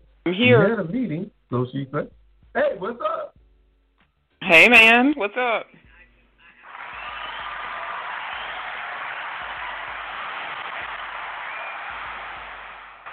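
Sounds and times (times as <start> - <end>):
speech: 0.2 - 3.2, 4.4 - 5.8
crowd cheering and applauding to welcome a caller: 6.6 - 13.1.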